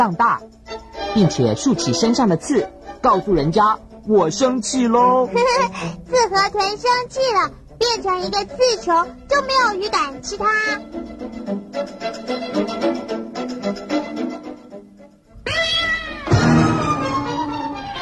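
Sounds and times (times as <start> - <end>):
speech: 0.0 - 14.2
angry cat yowling at a dog: 15.4 - 17.6.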